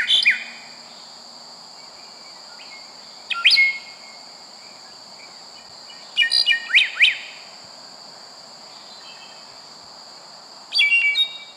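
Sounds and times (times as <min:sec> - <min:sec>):
bright high bird song: 0:00.0 - 0:01.1, 0:01.8 - 0:07.4, 0:08.7 - 0:09.6, 0:10.7 - 0:11.5.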